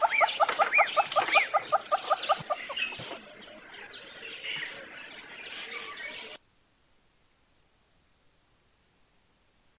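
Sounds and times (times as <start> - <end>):
Monteiro's hornbill calling with repeated clucking notes: 0.0 - 3.7.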